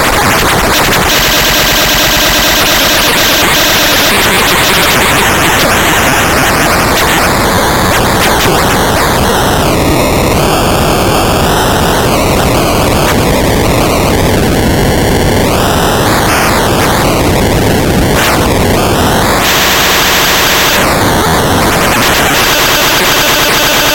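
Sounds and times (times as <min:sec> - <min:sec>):
circuit bent Gameboy industrial glitch sounds: 0:00.0 - 0:23.9.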